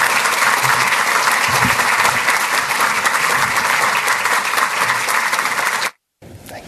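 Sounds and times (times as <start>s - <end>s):
applause: 0.0s - 6.0s.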